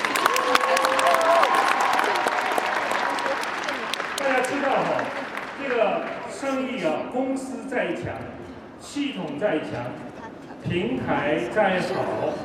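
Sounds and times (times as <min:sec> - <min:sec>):
audience applause: 0:00.0 - 0:06.6
speech: 0:07.8 - 0:10.0, 0:10.6 - 0:12.4.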